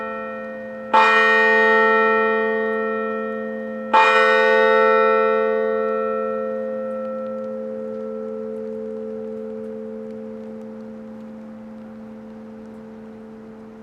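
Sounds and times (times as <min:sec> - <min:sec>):
Angelus bells ringing: 0:00.0 - 0:07.0.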